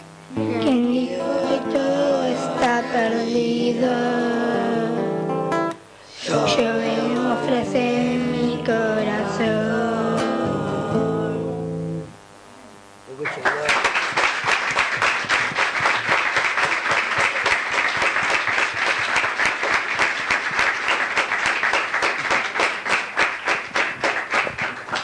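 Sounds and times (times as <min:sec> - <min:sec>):
choir singing final chord: 0:00.3 - 0:05.0, 0:06.2 - 0:11.7
audience applause: 0:13.2 - 0:25.0.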